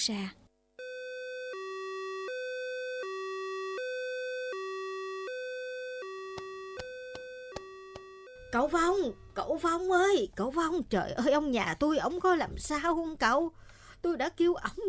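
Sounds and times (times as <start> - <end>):
speech: 0.0 - 0.4, 8.5 - 14.8
ambulance siren at a hospital: 0.8 - 9.4.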